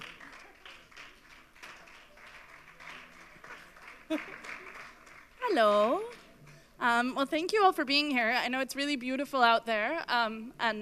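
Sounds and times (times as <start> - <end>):
audience applause: 0.0 - 5.4
speech: 4.1 - 4.5, 5.5 - 6.2, 6.8 - 10.8.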